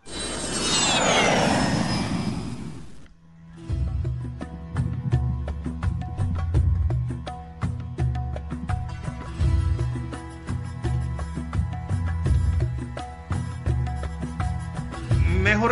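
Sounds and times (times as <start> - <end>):
airplane flying: 0.0 - 3.2
music: 3.2 - 15.6.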